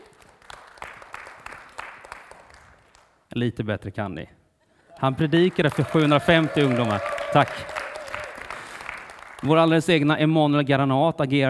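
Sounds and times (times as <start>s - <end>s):
audience applause: 0.0s - 3.0s, 5.0s - 9.9s
speech: 3.3s - 4.4s, 5.0s - 7.8s, 9.4s - 11.4s.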